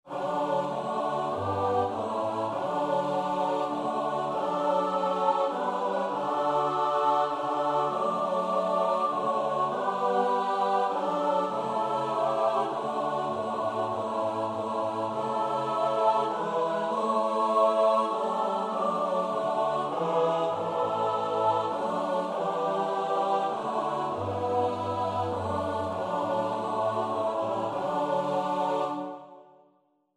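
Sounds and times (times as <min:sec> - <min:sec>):
soprano alto tenor bass choir: 0:00.0 - 0:29.7.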